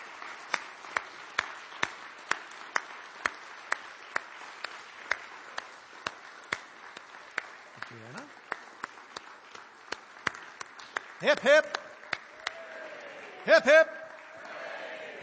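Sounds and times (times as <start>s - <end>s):
audience applause: 0.0s - 15.2s
speech: 11.2s - 11.8s, 13.5s - 14.0s.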